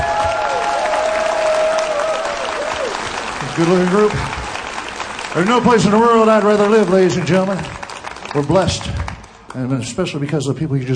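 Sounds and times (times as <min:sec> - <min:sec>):
audience applause: 0:00.0 - 0:09.7
speech: 0:03.6 - 0:04.4, 0:05.3 - 0:10.9.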